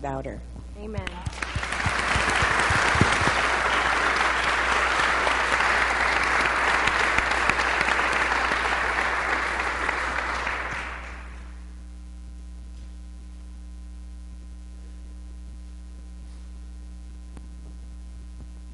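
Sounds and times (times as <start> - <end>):
speech: 0.0 - 1.6
audience applause: 1.0 - 11.6.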